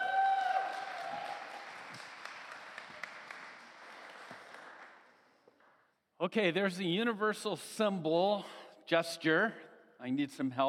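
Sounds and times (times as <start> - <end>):
audience applause welcoming a guest teacher at a church morning service: 0.0 - 5.4
speech: 6.2 - 10.6.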